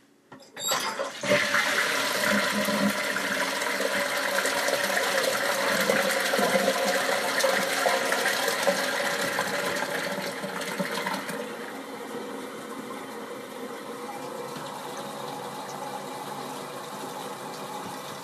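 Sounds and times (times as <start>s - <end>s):
toilet flushing in a shared toilet: 0.6s - 18.2s.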